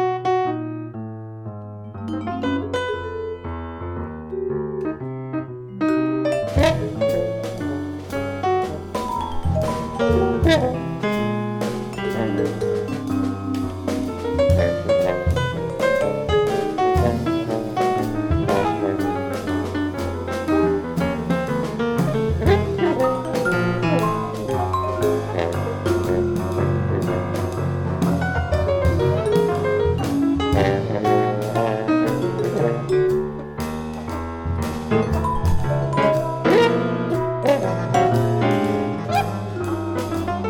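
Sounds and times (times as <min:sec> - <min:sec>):
bass clarinet playing free jazz: 0:00.0 - 0:01.0, 0:01.7 - 0:40.4
Rhodes electric piano playing free jazz: 0:00.0 - 0:40.4
vibraphone playing free jazz: 0:02.0 - 0:03.6, 0:05.8 - 0:19.0, 0:22.4 - 0:27.0, 0:28.8 - 0:40.3
drums playing free jazz: 0:06.2 - 0:40.4
trumpet playing free jazz: 0:06.3 - 0:34.1, 0:35.0 - 0:40.4
trombone playing free jazz: 0:06.3 - 0:40.4.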